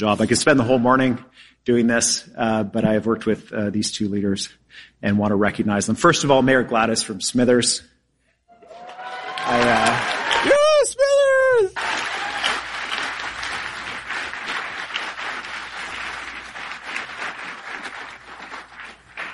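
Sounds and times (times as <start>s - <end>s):
speech: 0.0s - 7.9s, 9.5s - 10.6s
crowd whooping and cheering: 8.5s - 13.5s
crowd applauding: 8.6s - 10.9s, 11.8s - 19.3s.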